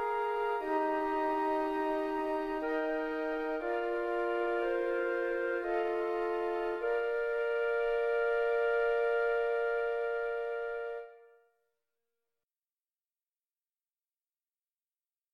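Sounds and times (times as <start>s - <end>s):
flute quartet playing: 0.0s - 11.3s.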